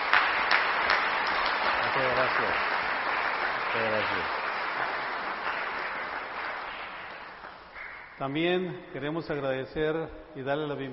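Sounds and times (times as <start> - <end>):
audience applauding: 0.0 - 8.2
speech: 2.0 - 2.8, 3.7 - 4.4, 8.2 - 10.9.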